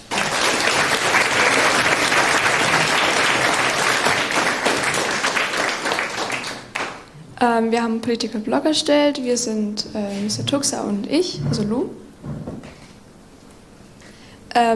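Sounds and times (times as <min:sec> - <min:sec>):
crowd applauding: 0:00.0 - 0:07.1
speech: 0:07.5 - 0:12.0, 0:14.6 - 0:14.7.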